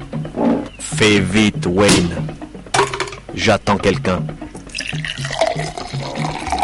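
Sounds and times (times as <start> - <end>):
speech: 1.0 - 2.4, 3.4 - 5.7
scotch being poured into a glass: 4.7 - 6.6.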